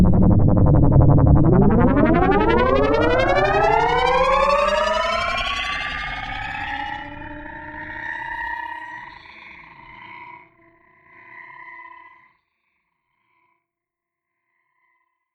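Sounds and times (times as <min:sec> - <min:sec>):
UFO atmosphere: 0:00.2 - 0:12.1.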